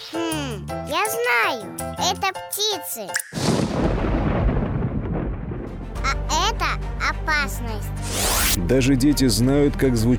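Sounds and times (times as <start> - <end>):
child speaking: 0.0 - 3.2, 6.0 - 8.0
speech: 1.5 - 3.9, 6.6 - 10.1
loud low rolling rumble of thunder in a thunderstorm: 3.5 - 6.1.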